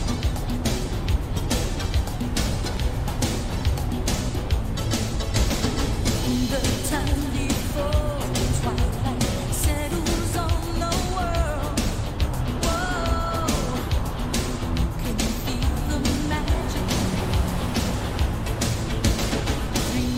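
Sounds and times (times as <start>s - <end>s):
moving car road and engine rumble: 0.0s - 20.1s.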